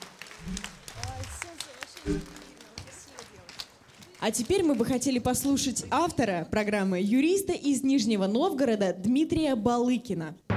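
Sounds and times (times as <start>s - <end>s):
audience applause: 0.0s - 5.6s
speech: 2.0s - 2.4s, 4.2s - 10.4s.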